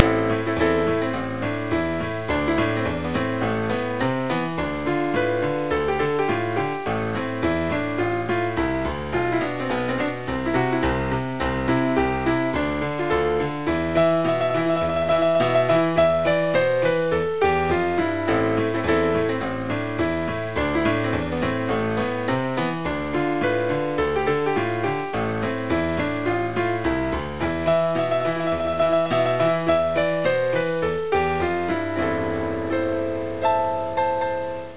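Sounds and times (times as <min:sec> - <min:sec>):
saloon ragtime music: 0:00.0 - 0:34.7.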